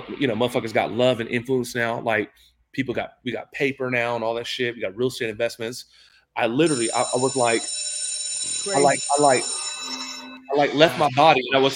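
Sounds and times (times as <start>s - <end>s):
speech: 0.1s - 8.0s, 8.6s - 11.7s
alarm bells ringing: 6.6s - 11.2s.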